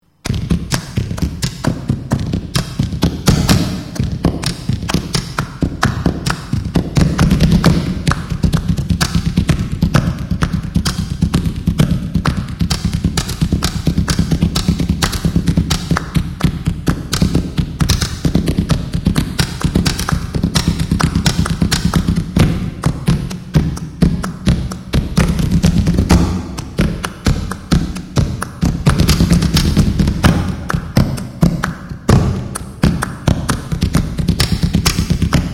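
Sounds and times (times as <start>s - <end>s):
drum: 0.2s - 35.5s.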